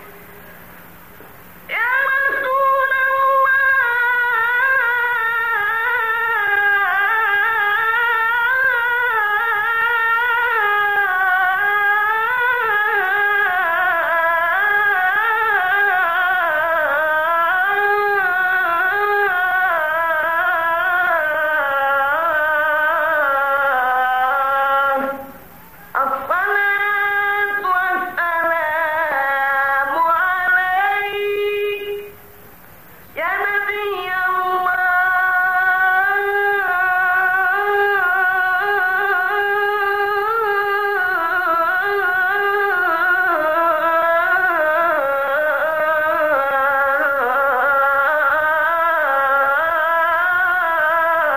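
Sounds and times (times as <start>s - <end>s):
Azan call to prayer: 1.7s - 32.3s, 33.0s - 51.3s.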